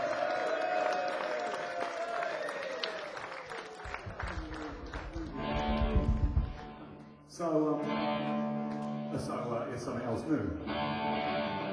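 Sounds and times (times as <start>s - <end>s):
audience applause: 0.0s - 7.0s
speech: 7.4s - 7.9s, 9.2s - 11.6s.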